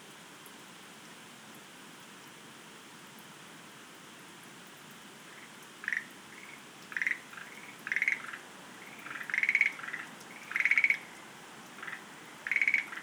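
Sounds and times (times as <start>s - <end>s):
Schlegel's green tree frogs rattling croaks: 5.3s - 11.2s, 11.8s - 13.0s.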